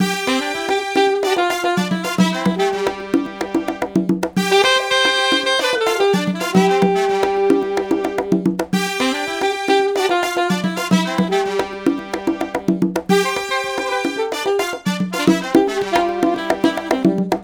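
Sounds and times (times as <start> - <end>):
Cuban song: 0.0 - 17.4.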